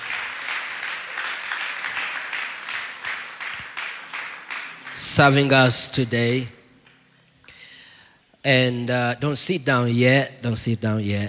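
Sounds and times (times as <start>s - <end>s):
audience clapping hands: 0.0s - 6.0s
speech: 5.1s - 6.6s, 8.4s - 11.2s.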